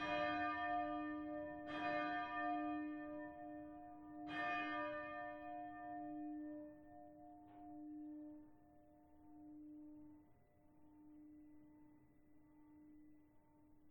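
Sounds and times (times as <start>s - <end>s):
bell in the south tower: 0.0s - 10.2s.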